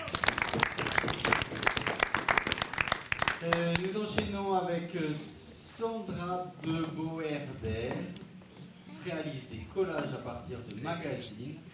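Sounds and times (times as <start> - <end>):
audience applause: 0.0 - 3.6
speech: 3.4 - 8.2, 9.0 - 11.7.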